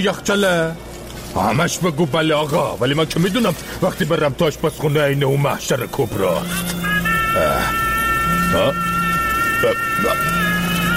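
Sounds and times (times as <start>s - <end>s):
speech: 0.0s - 6.8s, 7.4s - 7.9s, 8.5s - 8.9s, 9.6s - 10.4s
mobile phone ringing: 6.1s - 10.9s.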